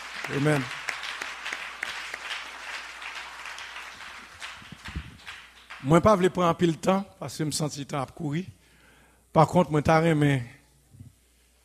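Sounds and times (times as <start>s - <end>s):
crowd applauding: 0.0s - 6.2s
speech: 0.3s - 0.8s, 5.8s - 8.6s, 9.3s - 10.6s.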